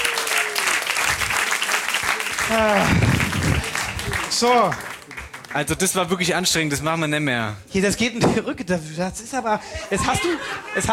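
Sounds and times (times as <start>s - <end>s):
audience applause: 0.0s - 5.8s
speech: 2.5s - 3.0s, 4.4s - 4.9s, 5.5s - 10.9s.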